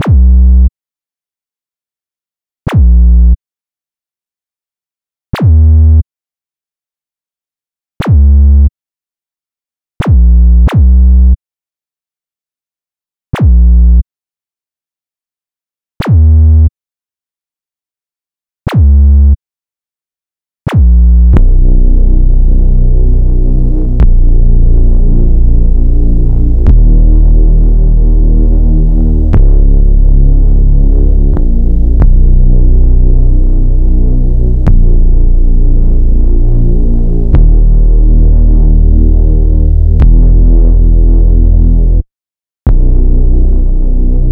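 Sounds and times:
bass: 0:00.0 - 0:00.7, 0:02.7 - 0:03.4, 0:05.4 - 0:06.0, 0:08.0 - 0:08.7, 0:10.0 - 0:11.4, 0:13.4 - 0:14.0, 0:16.0 - 0:16.7, 0:18.7 - 0:19.4, 0:20.7 - 0:42.1, 0:42.7 - 0:44.3.

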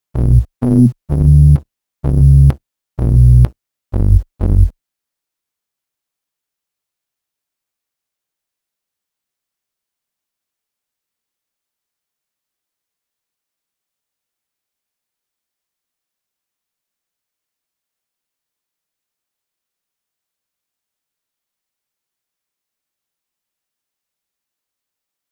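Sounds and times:
bass in B minor: 0:00.0 - 0:04.7.

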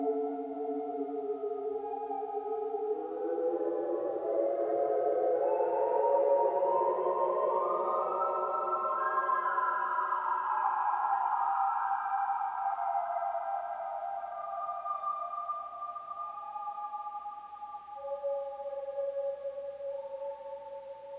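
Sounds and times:
ambient whale synth: 0:00.0 - 0:21.1.

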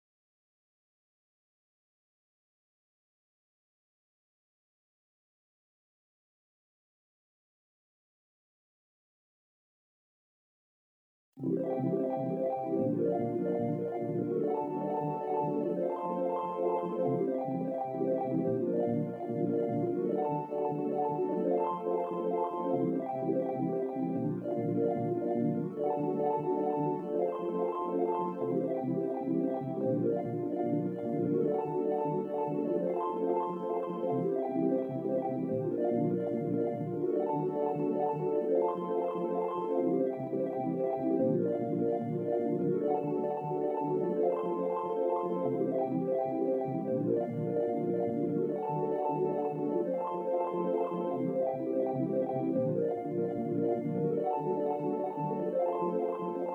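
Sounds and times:
lead melody over backing: 0:11.7 - 0:56.5.

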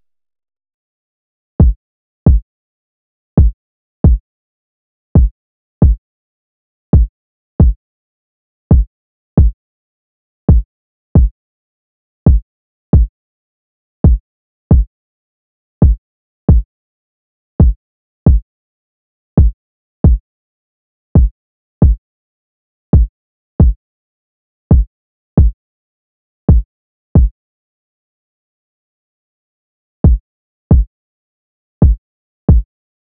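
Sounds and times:
kick drum: 0:01.6 - 0:02.4, 0:03.4 - 0:04.2, 0:05.2 - 0:06.0, 0:06.9 - 0:07.8, 0:08.7 - 0:09.6, 0:10.5 - 0:11.3, 0:12.3 - 0:13.1, 0:14.0 - 0:14.9, 0:15.8 - 0:16.7, 0:17.6 - 0:18.4, 0:19.4 - 0:20.2, 0:21.2 - 0:22.0, 0:23.0 - 0:23.8, 0:24.7 - 0:25.6, 0:30.0 - 0:30.9, 0:31.8 - 0:32.7.

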